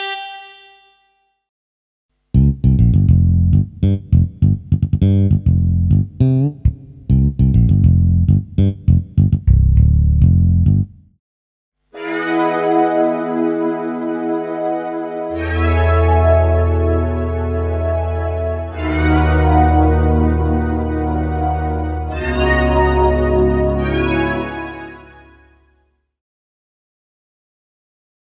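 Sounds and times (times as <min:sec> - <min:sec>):
bass: 0:02.2 - 0:11.2, 0:15.3 - 0:25.1
synthesizer: 0:11.9 - 0:25.5
organ: 0:12.0 - 0:25.3.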